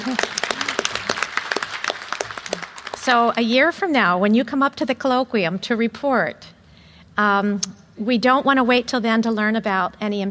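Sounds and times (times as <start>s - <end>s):
audience applause: 0.0s - 3.2s
speech: 3.1s - 6.5s, 7.2s - 10.2s.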